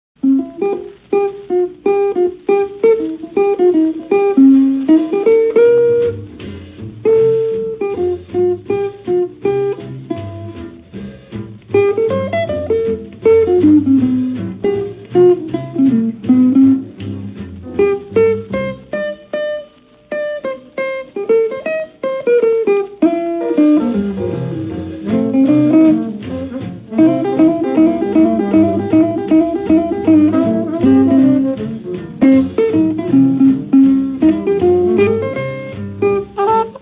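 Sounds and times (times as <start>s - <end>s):
ad lib blues: 0.2s - 36.8s.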